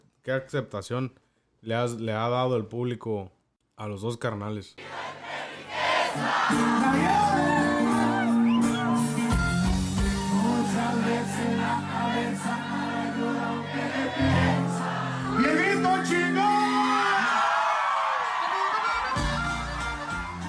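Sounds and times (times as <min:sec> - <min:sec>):
speech: 0:00.2 - 0:05.0, 0:06.2 - 0:07.6
live concert crowd singing along: 0:04.8 - 0:09.3, 0:09.9 - 0:17.2
live concert crowd cheering: 0:05.4 - 0:20.4.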